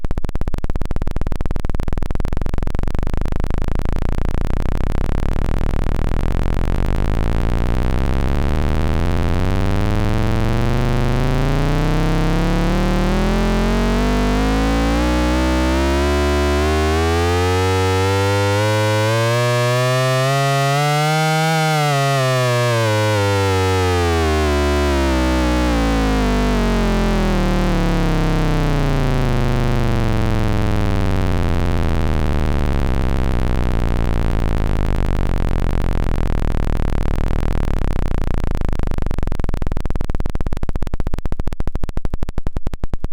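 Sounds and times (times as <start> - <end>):
Xaoc Devices Leibniz Binary Subsystem 8Bit LFO: 0.1 - 43.0.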